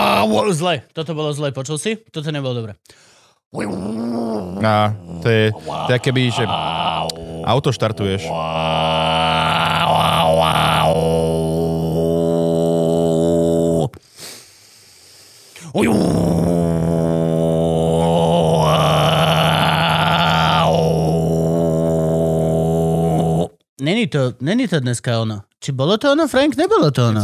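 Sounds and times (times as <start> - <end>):
speech: 0.2 - 9.1, 15.7 - 16.5, 23.8 - 27.2
person imitating alien national singing with buzzing guttural droning: 3.6 - 14.0, 15.7 - 23.6.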